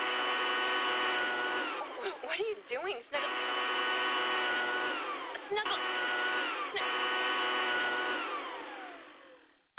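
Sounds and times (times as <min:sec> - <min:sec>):
200-mile-per-hour cordless leaf blower running: 0:00.0 - 0:09.6
speech: 0:02.8 - 0:03.4.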